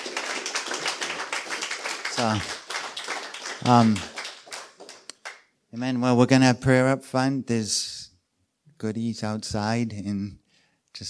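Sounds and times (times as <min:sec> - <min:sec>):
audience clapping: 0:00.0 - 0:05.6
speech: 0:02.2 - 0:02.6, 0:03.6 - 0:04.1, 0:05.7 - 0:07.8, 0:08.8 - 0:10.4.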